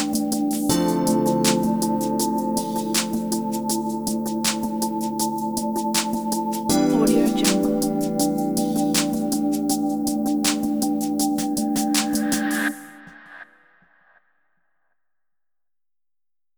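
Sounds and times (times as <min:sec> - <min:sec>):
ambient background improvisation: 0:00.0 - 0:13.1.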